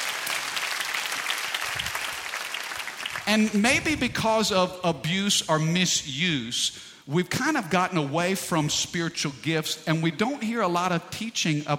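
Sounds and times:
audience clapping hands: 0.0 - 3.6
speech: 3.3 - 11.7.

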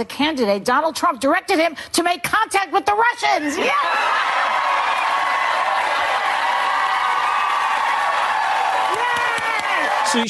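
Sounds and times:
speech: 0.0 - 4.6, 10.0 - 10.2
large crowd cheering: 3.5 - 10.2
scattered claps: 7.4 - 9.9.

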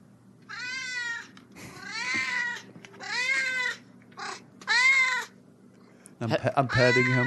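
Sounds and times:
old cat meowing in greeting: 0.5 - 5.4, 6.7 - 7.2
speech: 6.2 - 7.2.

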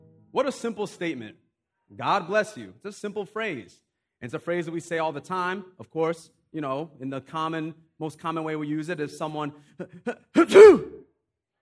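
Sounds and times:
speech: 0.4 - 11.1
sneeze: 10.4 - 11.1.

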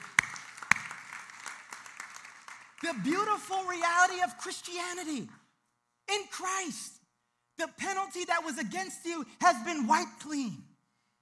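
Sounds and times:
audience applause: 0.0 - 3.4
speech: 2.8 - 5.4, 6.1 - 7.0, 7.6 - 10.6.

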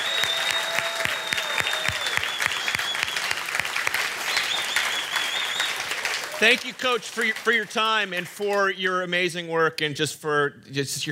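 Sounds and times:
round of applause: 0.0 - 8.7
speech: 6.4 - 11.0.

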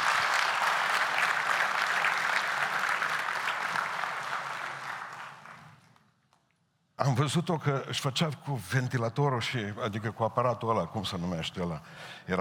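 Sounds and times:
audience applause: 0.0 - 5.9
speech: 7.0 - 12.3.

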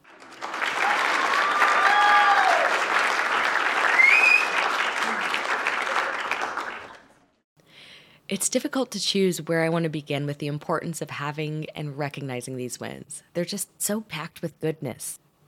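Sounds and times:
applause: 0.0 - 7.4
speech: 8.4 - 15.2.

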